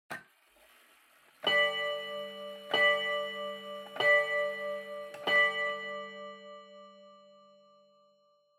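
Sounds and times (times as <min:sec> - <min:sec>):
long pendulum clock chime: 0:01.4 - 0:08.5.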